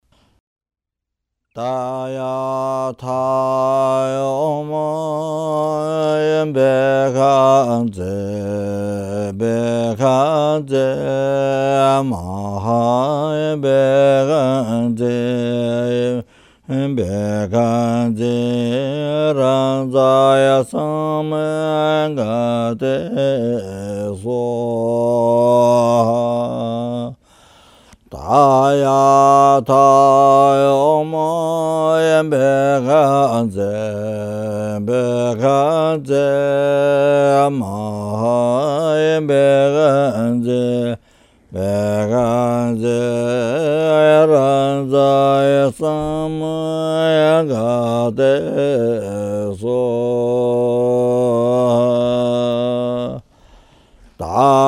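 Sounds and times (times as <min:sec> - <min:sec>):
mantra chanting: 0:01.6 - 0:27.3, 0:28.0 - 0:53.3, 0:54.0 - 0:54.6.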